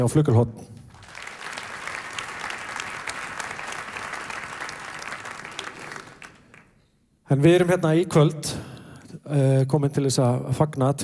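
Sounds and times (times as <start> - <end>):
speech: 0.0 - 0.8, 7.3 - 11.0
concert audience applauding a pianist: 0.9 - 6.8.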